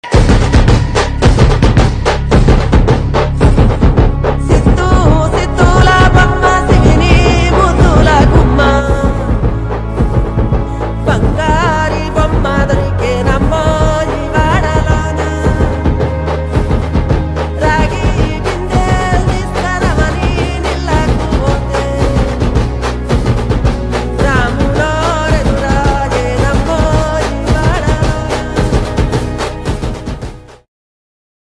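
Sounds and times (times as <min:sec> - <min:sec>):
song background music: 0:00.0 - 0:30.7.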